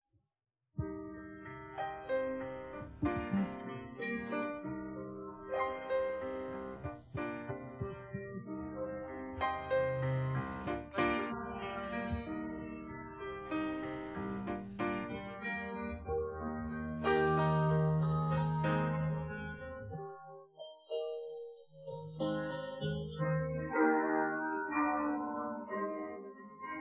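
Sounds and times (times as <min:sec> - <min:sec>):
piano: 0:00.8 - 0:26.7.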